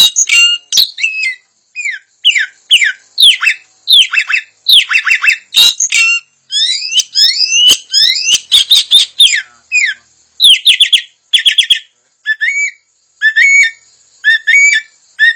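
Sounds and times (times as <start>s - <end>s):
puff-throated babbler singing: 0.0s - 15.3s.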